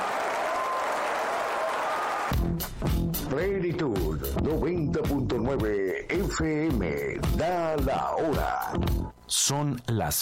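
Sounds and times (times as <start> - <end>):
audience applause: 0.0 - 2.4
speech: 2.4 - 10.2.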